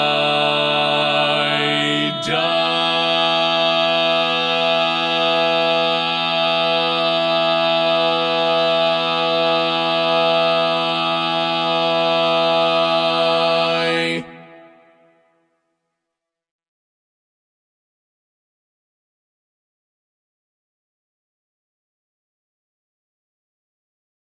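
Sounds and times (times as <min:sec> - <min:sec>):
bass: 0:00.0 - 0:14.6.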